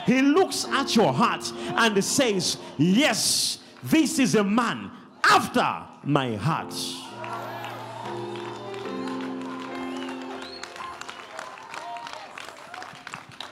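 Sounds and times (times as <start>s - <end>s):
speech: 0.1s - 7.0s
audience clapping hands: 7.0s - 13.5s.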